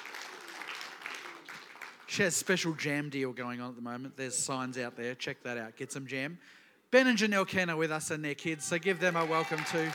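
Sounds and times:
crowd applause: 0:00.0 - 0:02.1, 0:09.0 - 0:09.9
speech: 0:02.1 - 0:09.9.

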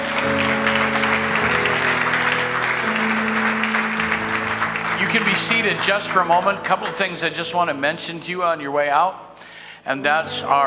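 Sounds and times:
church congregation applauding: 0:00.0 - 0:07.2
speech: 0:05.1 - 0:10.6.

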